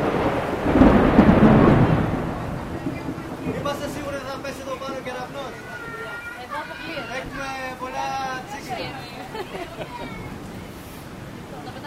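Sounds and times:
thunder: 0.0s - 5.4s
heavy rain downpour: 0.0s - 11.8s
laughter: 5.7s - 10.6s, 11.5s - 11.8s.

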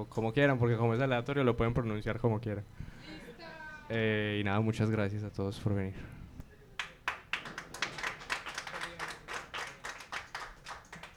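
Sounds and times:
speech: 0.0s - 6.2s
audience applause for musicians after a concert: 6.8s - 11.1s.

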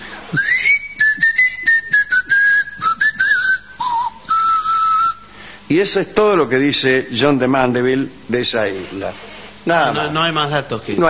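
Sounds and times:
speech: 0.3s - 0.6s, 5.7s - 11.0s
island inhabitants whistling instead of speaking: 0.3s - 5.4s.

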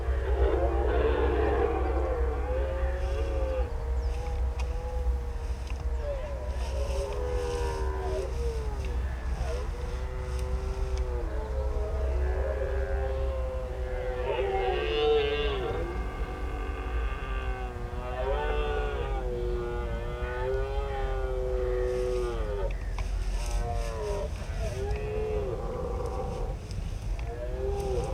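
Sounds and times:
rutting red deer stags bellowing in a marsh reserve: 0.1s - 13.4s, 14.1s - 28.1s.

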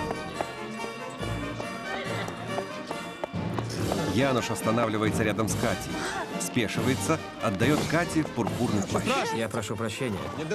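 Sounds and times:
horse hooves clip-clopping through a crowd: 0.0s - 4.4s
speech: 4.2s - 10.5s.

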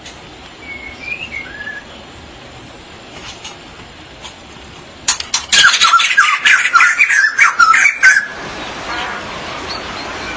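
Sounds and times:
magpie-robin or shama song: 0.6s - 2.1s, 5.5s - 8.7s, 9.6s - 10.3s.

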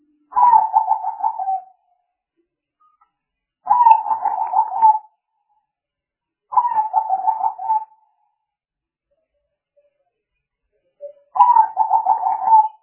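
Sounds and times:
spotted dove cooing: 0.3s - 1.7s, 3.7s - 5.1s, 6.5s - 8.0s, 11.4s - 12.8s.

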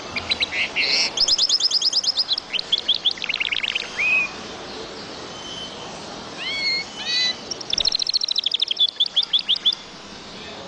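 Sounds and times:
bird song: 0.0s - 10.6s.

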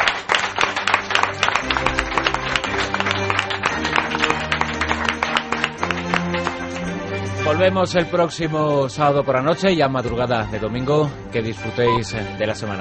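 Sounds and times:
audience applause: 0.0s - 7.8s
speech: 7.5s - 12.8s.

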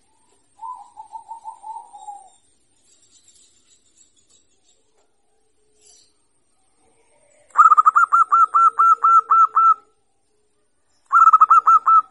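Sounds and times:
zebra dove singing: 0.0s - 2.4s, 6.9s - 10.0s, 11.1s - 12.0s.

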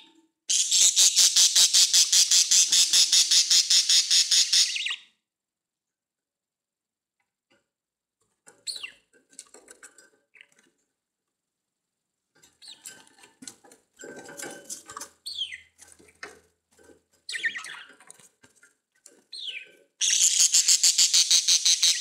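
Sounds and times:
budgerigar calls: 0.5s - 5.0s, 19.4s - 21.9s.

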